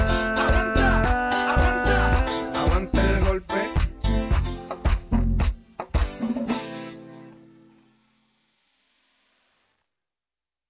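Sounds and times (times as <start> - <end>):
old-school reggaeton mix: 0.0 - 7.4.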